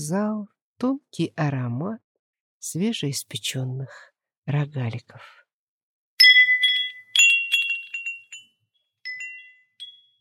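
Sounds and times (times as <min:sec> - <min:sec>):
speech: 0:00.0 - 0:02.0, 0:02.6 - 0:05.4
small bell jingling: 0:06.2 - 0:10.1.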